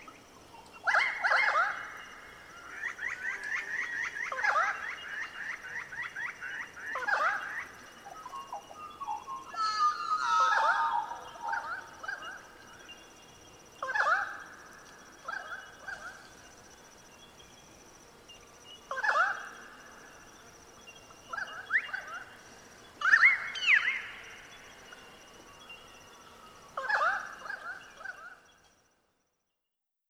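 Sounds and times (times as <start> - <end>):
pied currawongs chorus of ringing fluting whistles in eucalypt forest: 0.0 - 14.6, 20.8 - 28.7.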